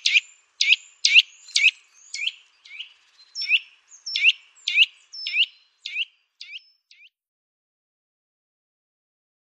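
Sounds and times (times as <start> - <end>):
Eurasian nuthatch sharp high calls: 0.0 - 7.1.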